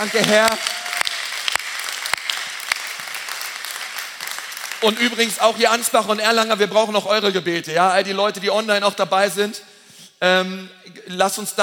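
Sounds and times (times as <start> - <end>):
speech: 0.0 - 0.8, 4.8 - 11.6
audience applause: 0.0 - 5.8.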